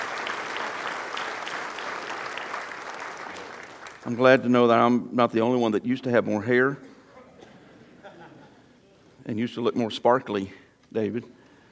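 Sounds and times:
crowd clapping: 0:00.0 - 0:04.3
speech: 0:04.0 - 0:06.9, 0:09.3 - 0:11.4
laughter: 0:07.2 - 0:09.0.

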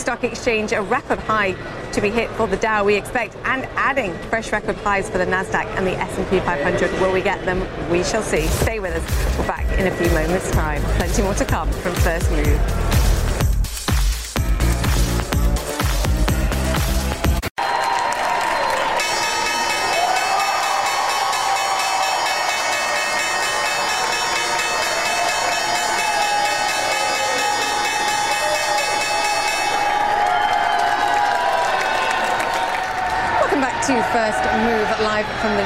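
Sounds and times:
speech: 0:00.0 - 0:13.0
crowd applauding and cheering: 0:12.8 - 0:35.6
stock exchange opening bell ringing: 0:19.0 - 0:30.6.

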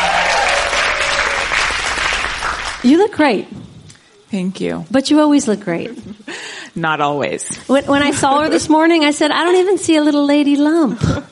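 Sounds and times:
live audience applause: 0:00.0 - 0:03.1
speech: 0:02.8 - 0:03.7, 0:04.3 - 0:11.3.

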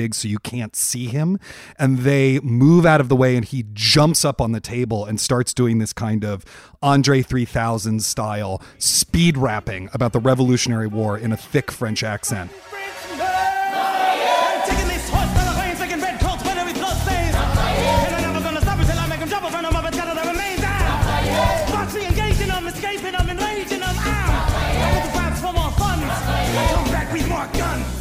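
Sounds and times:
speech: 0:00.0 - 0:12.8
audience cheering at a musical performance: 0:11.8 - 0:19.2, 0:20.5 - 0:27.9.

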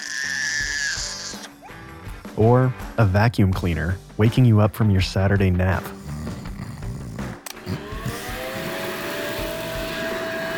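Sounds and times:
unhappy baby crying: 0:00.0 - 0:01.8, 0:05.9 - 0:08.7
speech: 0:02.4 - 0:06.0.

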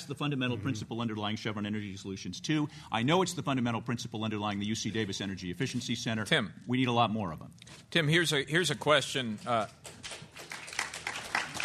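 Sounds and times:
speech: 0:00.0 - 0:10.3
audience applause: 0:10.2 - 0:11.6.

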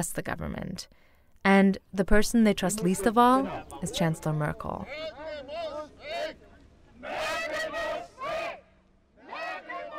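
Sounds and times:
speech: 0:00.0 - 0:06.4
protest crowd yelling Merkel muss weg: 0:02.8 - 0:09.9.

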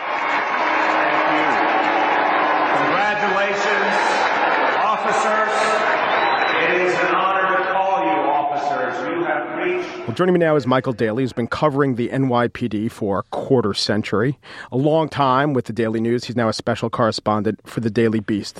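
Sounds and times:
crowd applauding: 0:00.0 - 0:09.0
crowd shouting catcalls: 0:00.0 - 0:10.2
crowd booing: 0:00.0 - 0:11.4
speech: 0:10.1 - 0:18.5.

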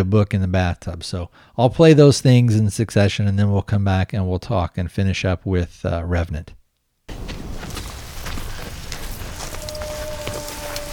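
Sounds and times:
speech: 0:00.0 - 0:06.6
gust of wind: 0:07.1 - 0:10.9.

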